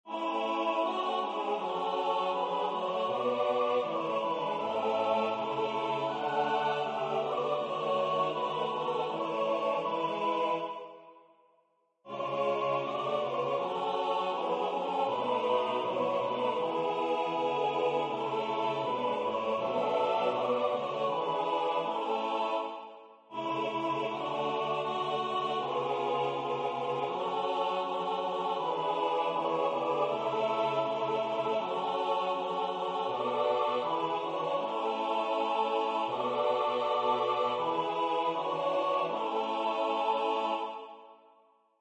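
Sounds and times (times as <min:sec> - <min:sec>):
SATB four-part choir singing: 0:00.0 - 0:11.3, 0:12.1 - 0:41.3.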